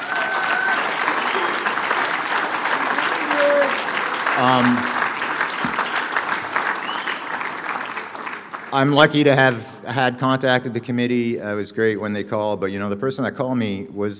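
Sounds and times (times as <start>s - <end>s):
large audience round of applause: 0.0s - 9.4s
speech: 4.4s - 4.9s, 8.7s - 14.1s
whistles: 5.7s - 6.2s, 6.8s - 7.4s.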